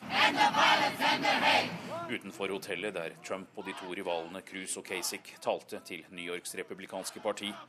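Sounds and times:
crowd of protesters chanting a slogan in unison: 0.0 - 2.1, 3.6 - 5.4
speech: 2.1 - 7.6.

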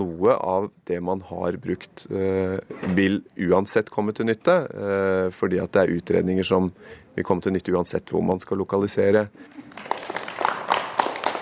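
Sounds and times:
speech: 0.2 - 10.0
sparse scattered clapping in a large hall: 9.7 - 11.4.

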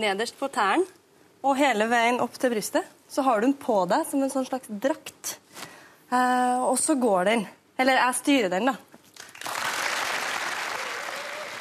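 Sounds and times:
speech: 0.0 - 5.4, 6.1 - 8.9
audience applause: 9.2 - 11.5.

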